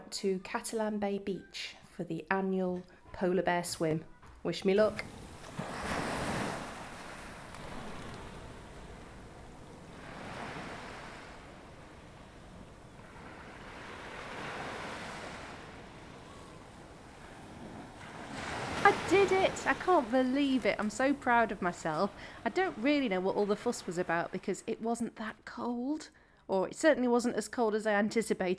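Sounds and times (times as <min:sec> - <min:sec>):
speech: 0:00.1 - 0:05.7, 0:19.6 - 0:28.5
wind at Catalan Bay Beach, Gibraltar: 0:04.8 - 0:24.4
surf at Catalan Bay Beach, Gibraltar: 0:04.8 - 0:24.6.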